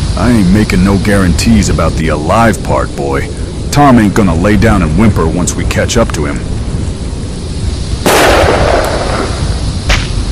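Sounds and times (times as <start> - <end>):
speech: 0.2 - 6.7
high-powered rifle slug sonic boom breaking the sound barrier: 8.1 - 10.2.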